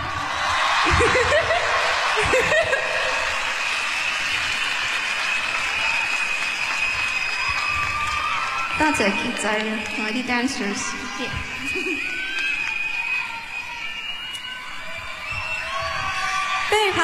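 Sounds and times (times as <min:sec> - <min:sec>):
audience clapping: 0:00.0 - 0:13.5
cheering: 0:00.0 - 0:17.0
laughter: 0:00.8 - 0:03.4, 0:11.6 - 0:12.2
speech: 0:08.8 - 0:12.2.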